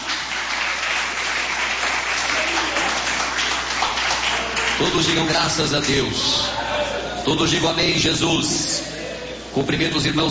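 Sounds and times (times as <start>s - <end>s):
audience applauding: 0.0s - 6.5s
speech: 4.8s - 6.6s, 7.2s - 8.8s, 9.5s - 10.2s.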